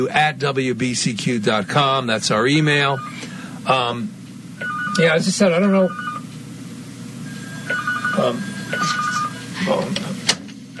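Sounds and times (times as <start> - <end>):
speech: 0.0 - 6.1, 8.2 - 9.0, 9.6 - 10.1
telephone ringing in warbling electronic bursts: 2.8 - 3.2, 4.6 - 6.3, 7.2 - 9.6.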